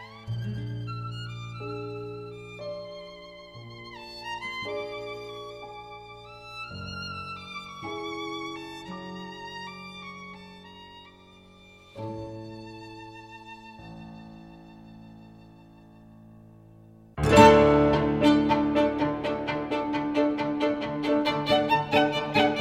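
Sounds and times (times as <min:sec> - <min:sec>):
folk dance music: 0:17.2 - 0:22.5.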